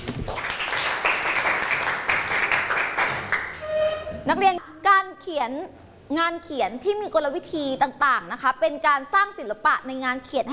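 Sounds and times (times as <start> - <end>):
classroom students clapping: 0.0 - 3.6
speech: 4.2 - 10.5.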